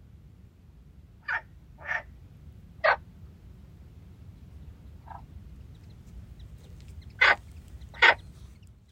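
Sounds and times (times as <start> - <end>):
low background noise: 0.0 - 8.9
frogs croaking: 1.2 - 2.1, 2.8 - 3.0, 5.0 - 5.3, 6.4 - 8.4.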